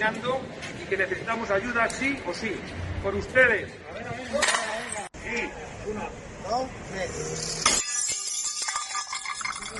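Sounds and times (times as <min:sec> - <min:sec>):
speech: 0:00.0 - 0:04.6, 0:05.8 - 0:07.8
plates being smashed in protest by restaurateurs: 0:07.5 - 0:09.7.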